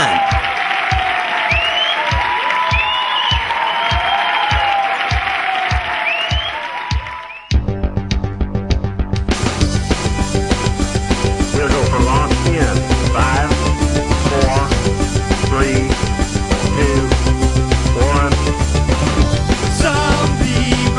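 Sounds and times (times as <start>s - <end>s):
loud audience applause: 0.0s - 7.6s
whistle-like cheers: 0.0s - 7.6s
music: 0.0s - 20.9s
steady rhythmic thumps: 0.0s - 20.9s.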